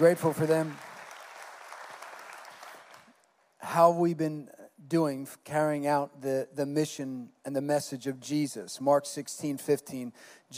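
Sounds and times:
speech: 0:00.0 - 0:00.9, 0:03.7 - 0:10.5
audience applause: 0:00.0 - 0:03.1.

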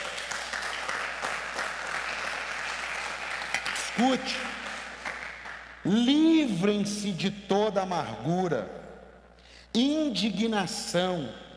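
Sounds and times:
audience applause: 0:00.0 - 0:05.6
speech: 0:04.0 - 0:04.6, 0:05.8 - 0:08.8, 0:09.8 - 0:11.4.

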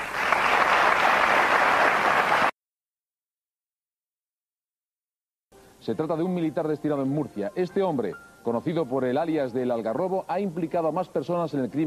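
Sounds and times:
audience applause: 0:00.0 - 0:02.5
speech: 0:05.8 - 0:11.8.

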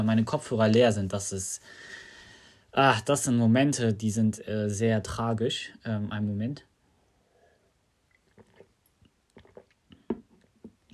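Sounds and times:
speech: 0:00.0 - 0:02.0, 0:02.8 - 0:06.7
person taking a quick sip of a drink: 0:08.1 - 0:10.9
swallowing: 0:08.1 - 0:10.9.

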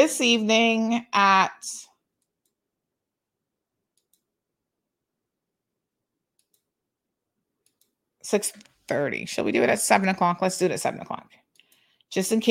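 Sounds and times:
speech: 0:00.0 - 0:01.8, 0:08.3 - 0:11.4, 0:12.1 - 0:12.5
mouse clicks on a computer while scheduling a show: 0:03.9 - 0:04.3, 0:06.4 - 0:06.7, 0:07.6 - 0:08.0.

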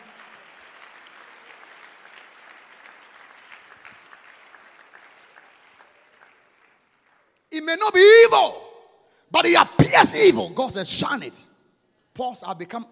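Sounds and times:
audience clapping: 0:00.0 - 0:07.5
speech: 0:07.6 - 0:08.6, 0:09.3 - 0:11.5, 0:12.2 - 0:12.9.

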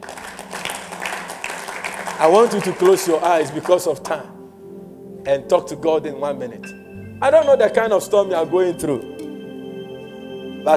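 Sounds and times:
audience clapping: 0:00.0 - 0:04.1
speech: 0:02.2 - 0:04.4, 0:05.2 - 0:09.2.

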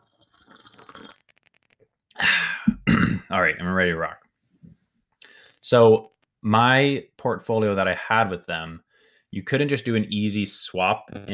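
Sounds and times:
person sipping tea: 0:00.0 - 0:02.7
speech: 0:03.3 - 0:04.2, 0:05.7 - 0:11.3.

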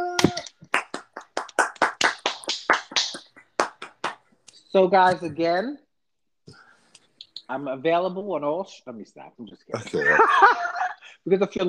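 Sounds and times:
audience clapping: 0:00.2 - 0:04.3
speech: 0:04.7 - 0:05.8, 0:07.5 - 0:11.6.

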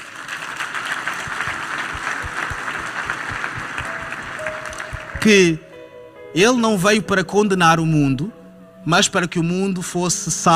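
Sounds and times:
audience applause: 0:00.0 - 0:05.6
speech: 0:05.2 - 0:05.6, 0:06.3 - 0:10.5.

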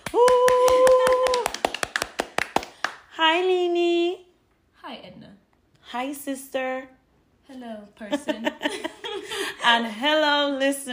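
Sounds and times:
hand claps: 0:00.0 - 0:03.1
speech: 0:03.4 - 0:04.2, 0:05.9 - 0:10.9.

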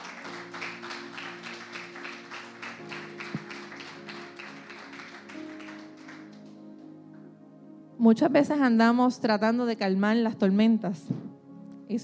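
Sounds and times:
audience applause: 0:00.0 - 0:06.6
speech: 0:08.0 - 0:11.3.

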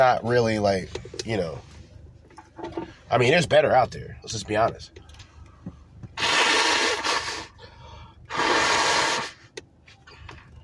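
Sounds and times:
speech: 0:00.0 - 0:01.7, 0:02.6 - 0:05.1
person blowing nose: 0:06.2 - 0:07.6, 0:08.3 - 0:09.5.

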